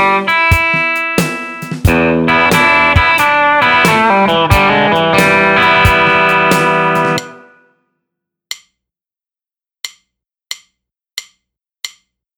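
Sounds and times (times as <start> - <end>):
build-up: 0.1 - 7.6.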